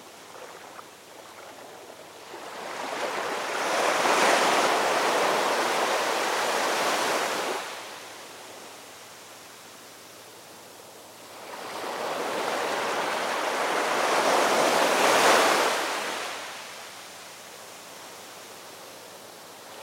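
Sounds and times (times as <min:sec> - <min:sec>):
sea noise: 0:00.0 - 0:19.8.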